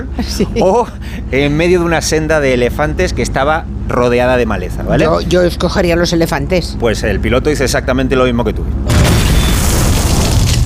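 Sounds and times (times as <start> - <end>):
laughter: 0.0 - 1.3
speech: 0.0 - 9.2
plane crash boom: 8.9 - 10.6.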